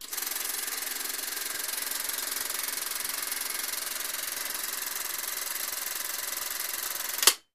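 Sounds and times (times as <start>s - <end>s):
16mm video camera running: 0.0s - 7.4s.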